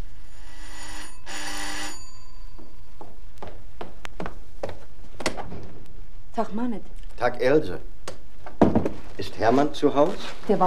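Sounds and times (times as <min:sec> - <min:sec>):
doorbell ringing: 0:00.2 - 0:03.1
speech: 0:06.4 - 0:07.9, 0:09.2 - 0:10.6.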